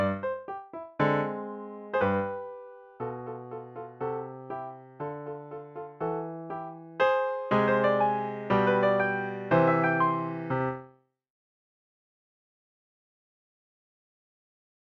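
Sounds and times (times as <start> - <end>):
piano piece: 0.0 - 10.9.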